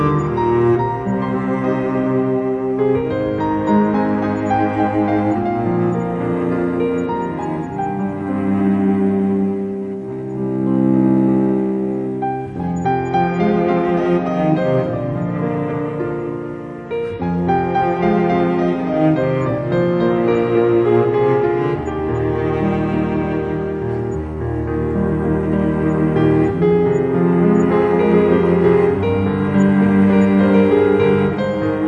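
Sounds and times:
cello: 0.0s - 31.8s
piano: 0.0s - 31.8s.

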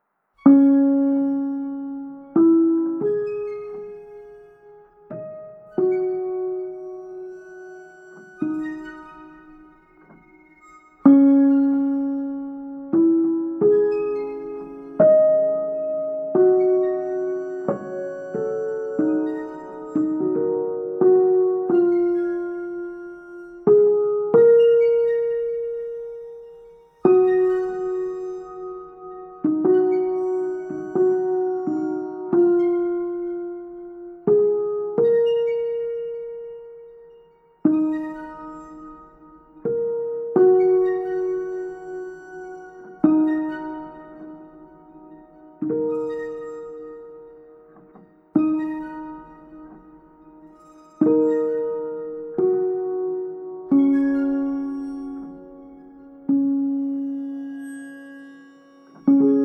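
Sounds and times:
instrumental music: 0.4s - 59.4s.

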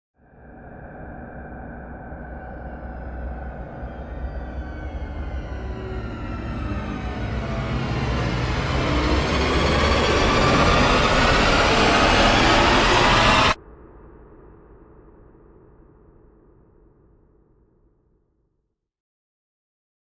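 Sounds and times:
airlock rising: 0.3s - 14.2s.

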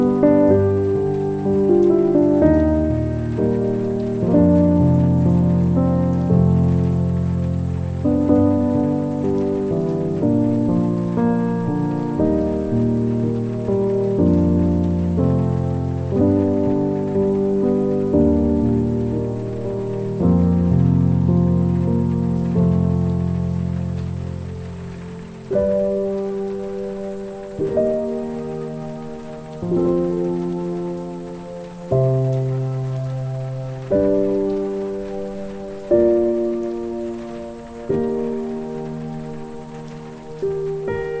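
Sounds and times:
rain: 0.0s - 41.1s
spa piano music: 0.0s - 41.1s.

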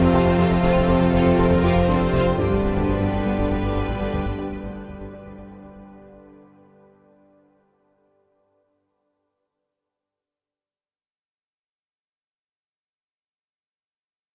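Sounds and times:
luxurious ambient music: 0.0s - 9.2s.

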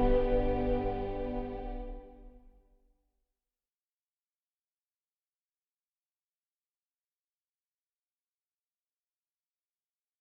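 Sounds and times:
warm ambient music: 0.0s - 2.3s.

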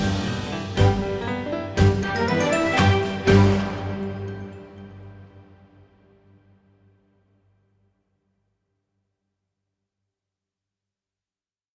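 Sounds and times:
comedic ambient music: 0.0s - 5.5s.

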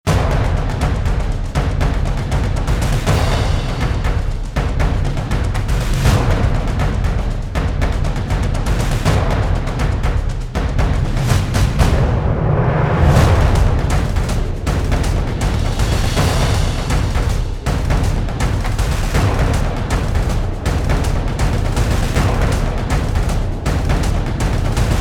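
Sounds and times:
drums: 0.0s - 25.0s.

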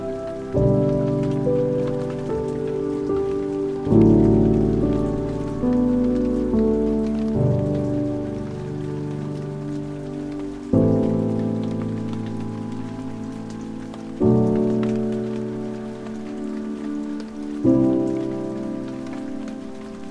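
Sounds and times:
piano: 0.0s - 20.0s
rain: 0.0s - 20.0s.

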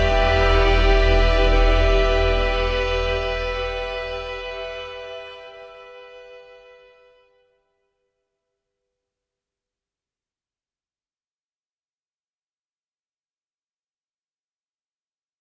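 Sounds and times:
ambient music: 0.0s - 7.2s.

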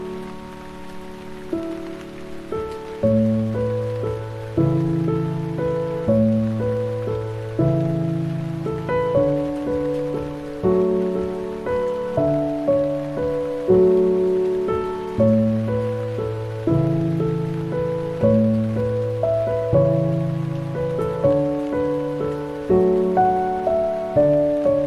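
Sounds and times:
dreamy piano: 0.0s - 24.8s.

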